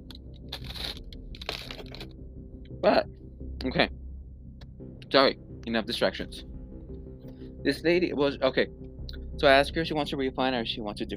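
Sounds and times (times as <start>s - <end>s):
person chewing: 0.5s - 2.1s
speech: 2.8s - 4.0s, 5.1s - 6.5s, 7.6s - 8.8s, 9.4s - 11.1s.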